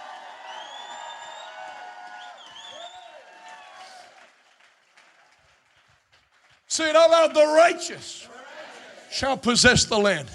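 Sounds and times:
crowd applauding and cheering: 0.0 - 7.0
speech: 6.8 - 8.3, 9.1 - 10.3.

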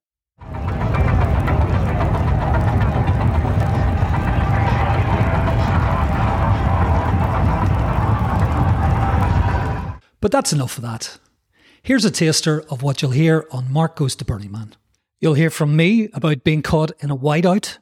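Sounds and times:
Burning Man festival crowd roaring at night: 0.4 - 10.0
deep throbbing bass of art cars: 0.4 - 10.0
faint musical tone: 0.4 - 10.0
rumbling engines of art cars: 0.4 - 10.0
speech: 10.3 - 17.8.

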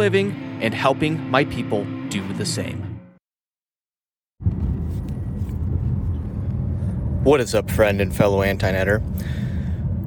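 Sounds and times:
speech: 0.0 - 2.9, 7.2 - 9.4
road noise inside a car on a drive to the office: 4.4 - 10.0.

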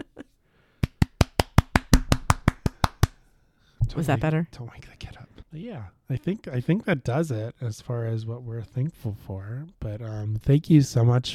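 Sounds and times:
hands clapping fast: 0.8 - 3.2
speech: 4.0 - 11.3.

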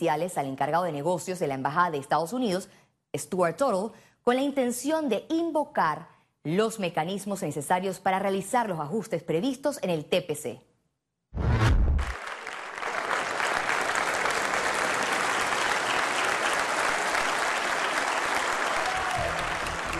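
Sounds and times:
speech: 0.0 - 10.7
standing ovation in the United States Congress: 12.0 - 19.9.

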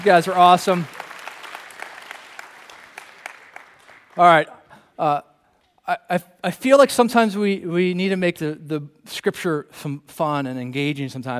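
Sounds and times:
speech: 0.0 - 1.0, 4.2 - 5.3, 5.9 - 11.3
audience applause: 0.0 - 4.6.

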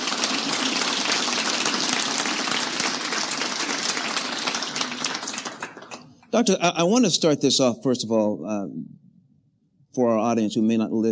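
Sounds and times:
audience applause: 0.0 - 6.3
speech: 6.3 - 9.0, 10.0 - 11.1.

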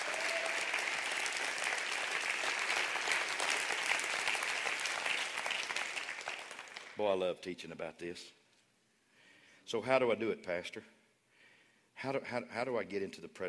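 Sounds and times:
audience clapping hands: 0.0 - 7.2
speech: 7.0 - 8.4, 9.7 - 11.0, 12.0 - 13.4.

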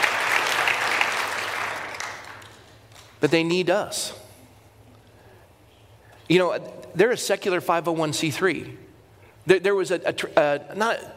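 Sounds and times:
audience clapping: 0.0 - 3.2
speech: 3.2 - 4.2, 6.3 - 8.8, 9.4 - 11.1.

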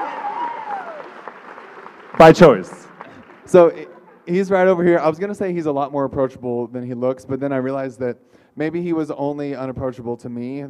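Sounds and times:
audience clapping: 0.0 - 4.3
speech: 2.2 - 2.8, 3.5 - 10.6.

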